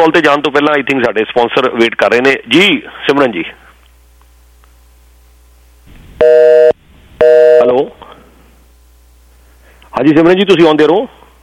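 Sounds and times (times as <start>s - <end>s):
speech: 0.0s - 3.6s, 6.2s - 8.0s, 10.0s - 11.2s
busy tone from a disconnected telephone line: 6.2s - 7.8s.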